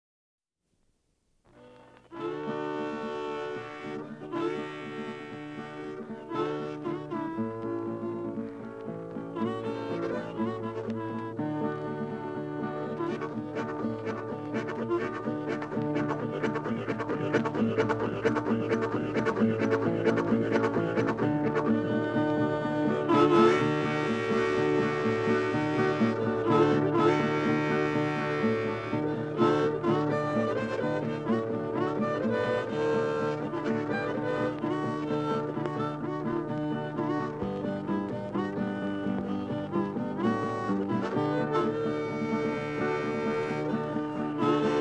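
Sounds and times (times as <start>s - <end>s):
blues music: 1.4s - 44.7s.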